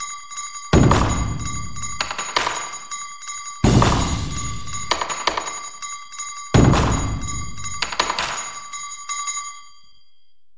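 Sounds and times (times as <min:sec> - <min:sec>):
taiko drums: 0:00.8 - 0:02.8, 0:03.6 - 0:05.7, 0:06.6 - 0:08.6.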